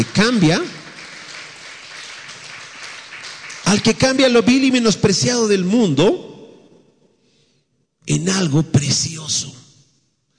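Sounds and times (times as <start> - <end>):
speech: 0.0 - 0.8, 3.7 - 6.3, 8.0 - 9.6
audience applause: 0.0 - 4.8.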